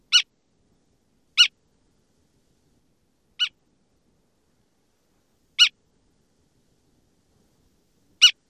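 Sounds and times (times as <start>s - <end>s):
calls: 5.6s - 5.8s, 8.2s - 8.4s.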